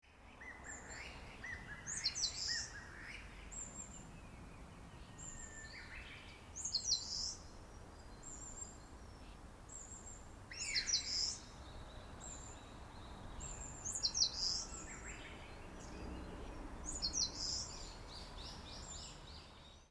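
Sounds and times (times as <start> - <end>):
Eastern Crowned Warbler singing: 0.4 - 19.9.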